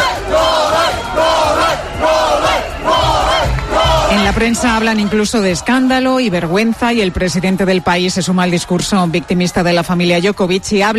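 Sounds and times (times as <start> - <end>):
crowd of supporters chanting in unison in the street: 0.0 - 6.1
speech: 4.4 - 10.9.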